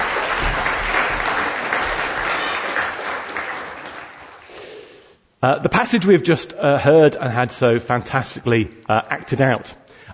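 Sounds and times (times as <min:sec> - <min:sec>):
audience applause: 0:00.0 - 0:04.7
speech: 0:05.4 - 0:10.1.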